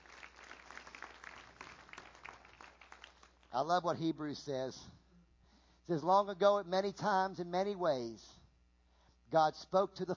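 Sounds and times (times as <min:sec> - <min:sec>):
audience clapping: 0:00.0 - 0:03.8
speech: 0:03.6 - 0:05.0, 0:05.9 - 0:08.4, 0:09.3 - 0:10.1.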